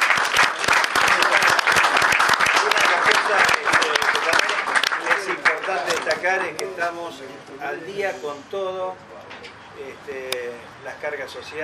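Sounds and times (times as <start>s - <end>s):
audience applause: 0.0s - 6.3s
speech: 6.4s - 9.2s, 9.8s - 11.6s.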